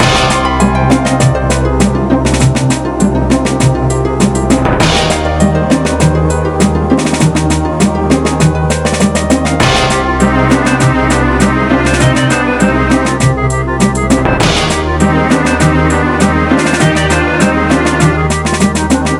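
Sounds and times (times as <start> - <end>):
pirate sound: 0.0 - 19.1.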